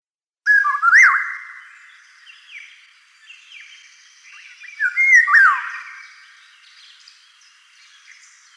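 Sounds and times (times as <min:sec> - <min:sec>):
Eurasian golden oriole Oriolus oriolus calling with mellow yodelling whistles: 0:00.5 - 0:01.5, 0:03.6 - 0:06.2.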